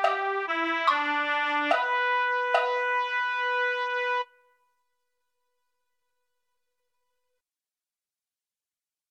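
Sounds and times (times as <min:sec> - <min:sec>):
trumpet: 0:00.0 - 0:04.7.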